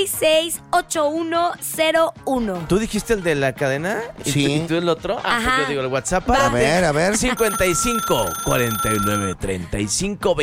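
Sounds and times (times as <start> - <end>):
music: 0.0 - 10.4
speech: 0.0 - 10.4
telephone ringing with incoming call: 7.4 - 9.4.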